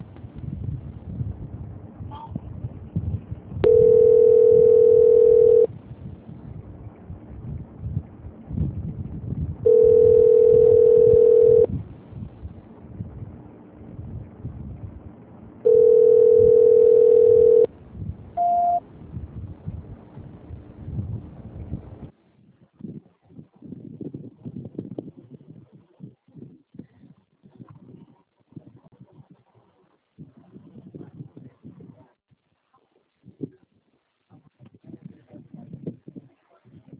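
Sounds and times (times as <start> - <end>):
telephone line tone while a call is transferred: 3.6 - 5.7, 9.7 - 11.7, 15.7 - 17.7, 18.4 - 18.8.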